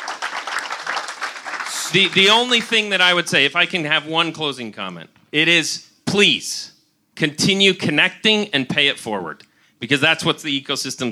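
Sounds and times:
audience round of applause: 0:00.0 - 0:02.7
speech: 0:01.9 - 0:11.1.

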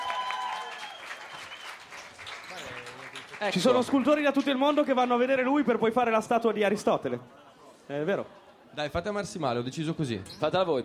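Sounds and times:
audience applause: 0:00.0 - 0:05.2
speech: 0:03.4 - 0:10.8.

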